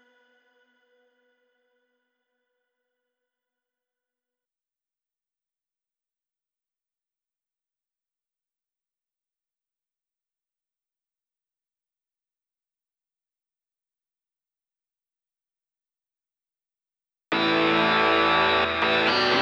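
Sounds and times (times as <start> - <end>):
synth pads: 17.3 - 19.4.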